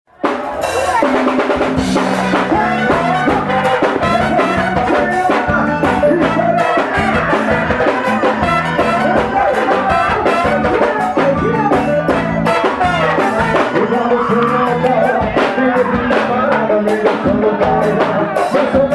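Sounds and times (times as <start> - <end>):
live forro music: 0.1 - 18.9.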